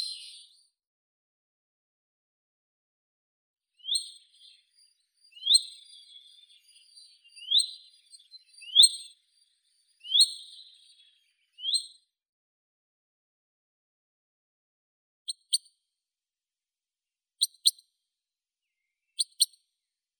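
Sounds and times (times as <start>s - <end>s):
common chaffinch Fringilla coelebs singing: 3.8s - 11.8s.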